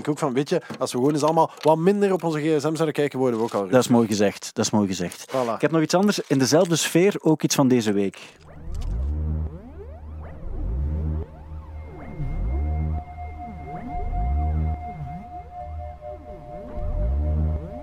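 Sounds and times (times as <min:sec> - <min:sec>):
speech: 0:00.0 - 0:08.5
ambient electronic music made with biosonic MIDI device: 0:08.4 - 0:17.8.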